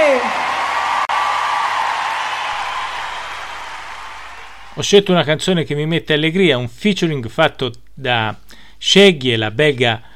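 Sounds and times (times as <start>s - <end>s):
crowd applauding and cheering: 0.0s - 4.9s
high whistle sliding downward: 1.4s - 4.8s
speech: 4.8s - 10.1s.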